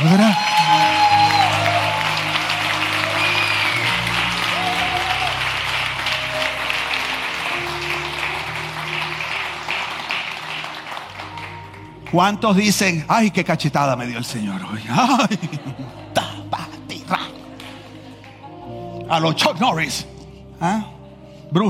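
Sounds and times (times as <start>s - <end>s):
loud audience applause: 0.0s - 12.8s
speech: 12.2s - 16.1s, 19.1s - 21.6s
laughter: 14.8s - 18.3s.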